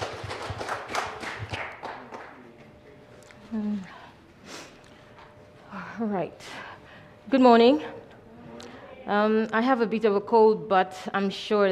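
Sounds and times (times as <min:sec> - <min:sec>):
audience applause: 0:00.0 - 0:02.7
speech: 0:06.0 - 0:06.6, 0:07.3 - 0:08.0, 0:09.1 - 0:11.7.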